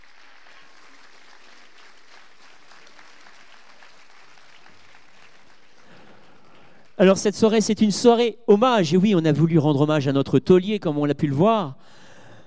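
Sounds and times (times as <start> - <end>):
audience applause for 14 contestants at a tribute evening: 0.0 - 7.0
speech: 7.0 - 12.0.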